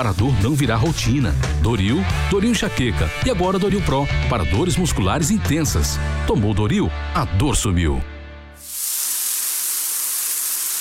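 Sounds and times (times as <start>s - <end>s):
speech: 0.0s - 8.1s
shower water spraying: 8.6s - 10.7s.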